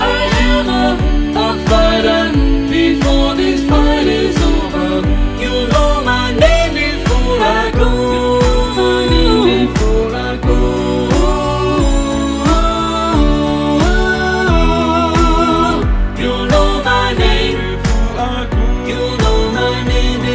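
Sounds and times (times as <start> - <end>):
SAATB choir, all voices singing: 0.0 - 20.3.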